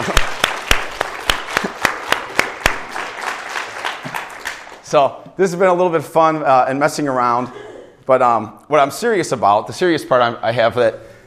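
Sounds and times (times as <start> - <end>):
audience applause: 0.0 - 4.8
speech: 4.9 - 11.1.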